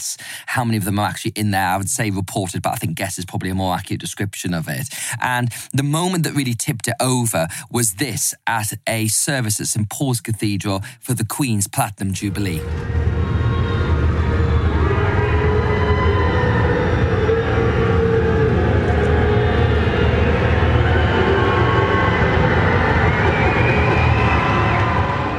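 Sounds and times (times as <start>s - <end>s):
speech: 0.0s - 13.5s
crowd cheering: 12.6s - 25.3s.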